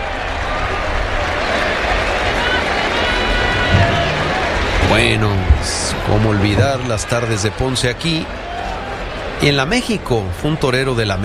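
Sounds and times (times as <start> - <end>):
bullring crowd cheering and applauding a toast to bullfighter Enrique Ponce: 0.0 - 9.6
speech: 4.9 - 8.5, 9.4 - 11.2.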